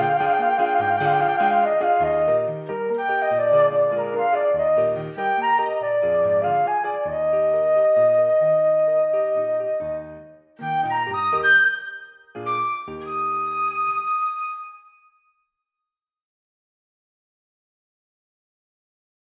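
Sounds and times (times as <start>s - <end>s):
piano: 0.0s - 15.2s
flute: 0.0s - 15.4s.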